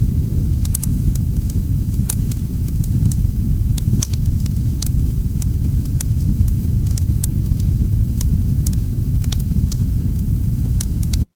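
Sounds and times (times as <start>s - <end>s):
fireplace ambience: 0.0s - 11.3s.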